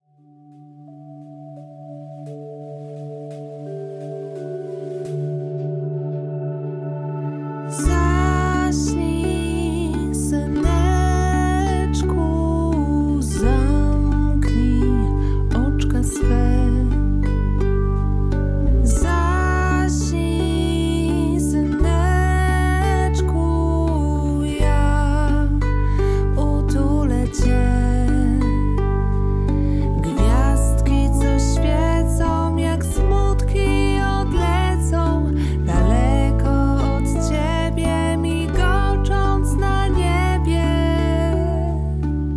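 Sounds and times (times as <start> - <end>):
vocal version of music: 1.1 - 42.3.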